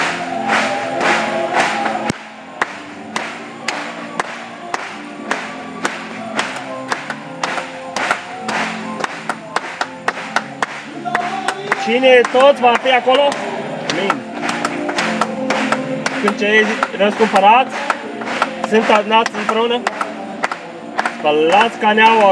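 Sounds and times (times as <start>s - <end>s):
audience clapping: 0.0s - 22.3s
speech: 11.9s - 14.2s, 16.2s - 17.8s, 18.7s - 19.9s, 21.2s - 22.3s.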